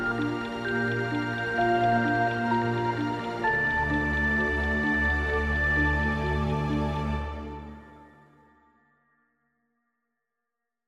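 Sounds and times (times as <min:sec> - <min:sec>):
epic arpeggio: 0:00.0 - 0:08.1.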